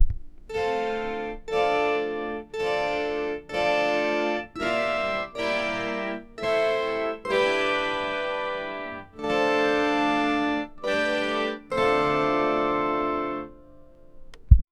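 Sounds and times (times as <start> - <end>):
national anthem played on Celtic harp: 0.5 - 13.9.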